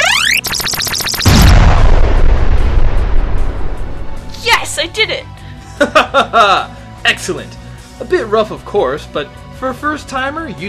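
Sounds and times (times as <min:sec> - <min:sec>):
charged weapon firing powerful blast: 0:00.0 - 0:04.3
speech: 0:04.9 - 0:10.6
laughter: 0:05.7 - 0:06.7.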